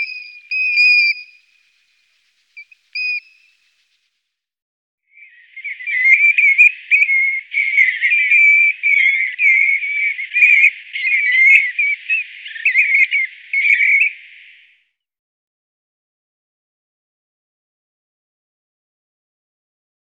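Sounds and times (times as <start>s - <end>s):
Golden plover giving plaintive whistled calls: 0.0s - 1.9s, 2.6s - 3.8s, 5.2s - 14.8s.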